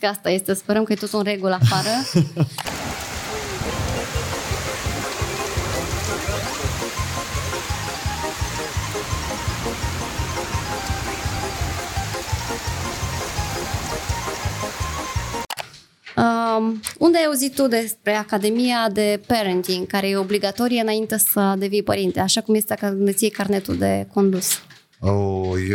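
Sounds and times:
speech: 0:00.0 - 0:03.0, 0:16.6 - 0:25.7
laughter: 0:01.6 - 0:04.6
hail falling outside: 0:02.7 - 0:15.5.

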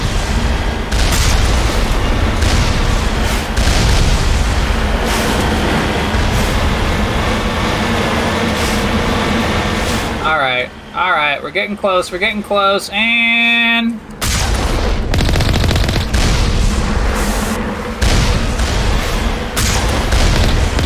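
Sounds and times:
booming video game gunshots at distant enemies: 0:00.0 - 0:07.1, 0:14.2 - 0:20.8
low rumble: 0:00.0 - 0:10.2, 0:14.2 - 0:20.8
speech: 0:11.3 - 0:14.0.

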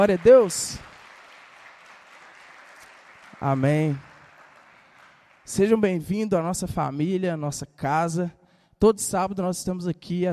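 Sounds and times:
speech: 0:00.0 - 0:00.9, 0:03.4 - 0:04.1, 0:05.5 - 0:10.3
audience applauding: 0:00.0 - 0:06.0.

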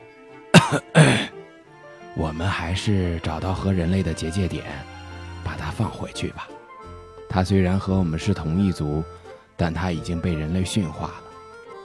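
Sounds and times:
throat clearing: 0:00.6 - 0:01.3
speech: 0:00.7 - 0:01.3, 0:02.2 - 0:05.0, 0:05.8 - 0:06.6, 0:07.3 - 0:11.3.

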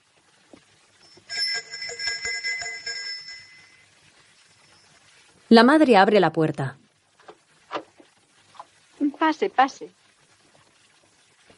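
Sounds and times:
doorbell ringing at house door: 0:01.0 - 0:03.8
speech: 0:05.5 - 0:06.8, 0:09.2 - 0:10.0.

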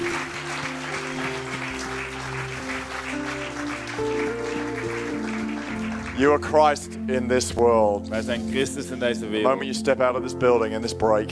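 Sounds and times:
church audience clapping for Pastor Chris: 0:00.0 - 0:06.9
sustained musical tones: 0:00.0 - 0:10.8
speech: 0:06.2 - 0:11.2.

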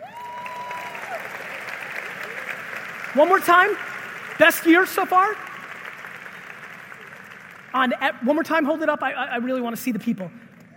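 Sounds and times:
audience applause: 0:00.0 - 0:08.2
speech: 0:03.1 - 0:05.4, 0:07.7 - 0:10.4.

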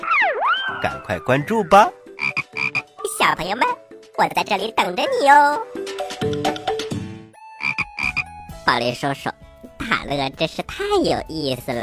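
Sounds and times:
speech: 0:00.8 - 0:02.0, 0:03.3 - 0:06.6, 0:08.7 - 0:11.8
frog croaking: 0:02.2 - 0:03.0, 0:07.6 - 0:08.3.

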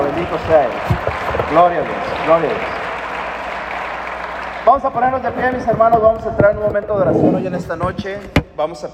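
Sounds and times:
audience applause: 0:00.0 - 0:05.7
speech: 0:00.2 - 0:02.8, 0:04.6 - 0:08.9.

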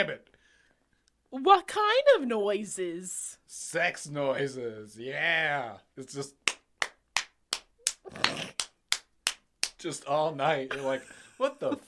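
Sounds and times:
speech: 0:00.0 - 0:00.3, 0:01.3 - 0:06.4, 0:08.1 - 0:08.6, 0:09.8 - 0:11.8
crisp fast hand claps: 0:06.3 - 0:09.9.

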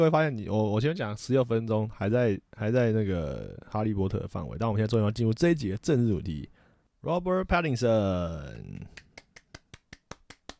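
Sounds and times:
speech: 0:00.0 - 0:09.0
hand claps: 0:08.9 - 0:10.5.

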